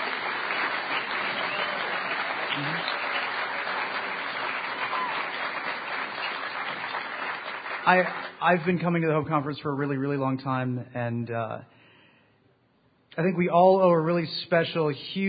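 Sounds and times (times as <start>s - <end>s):
conference audience applause: 0.0s - 8.7s
speech: 2.6s - 3.0s, 7.9s - 11.7s, 13.2s - 15.2s.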